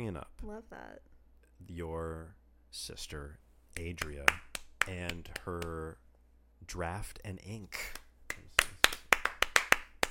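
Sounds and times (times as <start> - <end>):
speech: 0.0 - 6.0, 6.6 - 8.4
people clapping: 3.8 - 5.8, 7.8 - 10.0.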